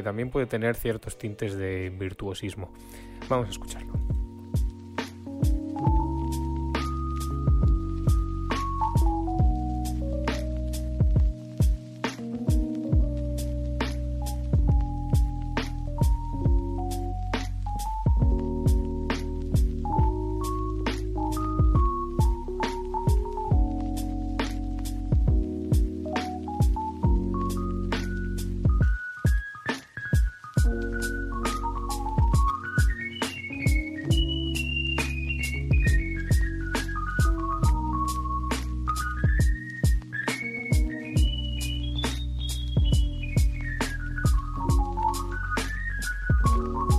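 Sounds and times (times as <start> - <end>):
speech: 0.0 - 4.7
lo-fi piano solo in a song: 3.3 - 46.9.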